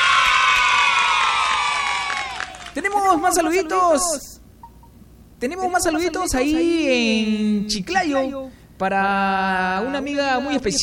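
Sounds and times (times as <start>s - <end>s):
audience applause: 0.0s - 2.9s
audience cheering: 0.0s - 3.6s
speech: 2.8s - 4.3s, 5.4s - 10.8s.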